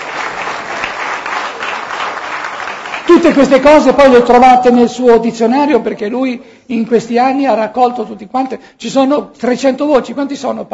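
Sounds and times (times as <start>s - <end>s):
audience applause for the author of a dictionary of Gospel terms: 0.0s - 3.5s
speech: 3.2s - 10.7s.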